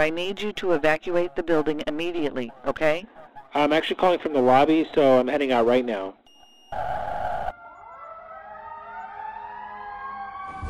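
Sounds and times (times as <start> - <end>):
speech: 0.0 - 7.3
fire engine siren: 6.4 - 10.6.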